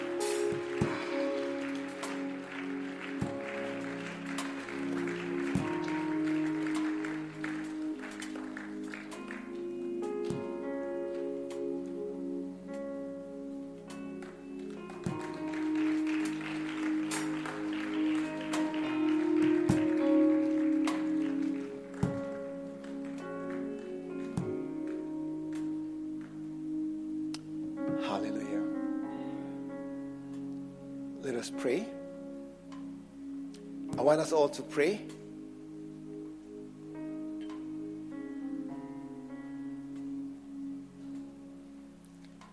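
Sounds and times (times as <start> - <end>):
audience clapping: 0.0 - 10.4, 14.1 - 26.4
music with sustained tones: 0.0 - 42.5
speech: 31.4 - 31.9, 34.1 - 35.2.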